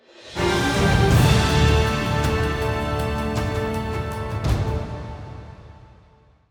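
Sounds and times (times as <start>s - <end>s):
musical stinger: 0.4s - 5.8s.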